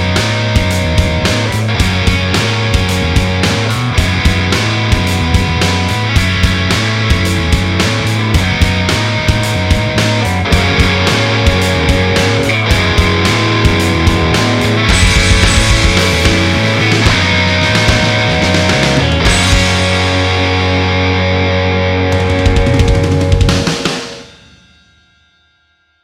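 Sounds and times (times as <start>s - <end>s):
backing music: 0.0s - 24.5s.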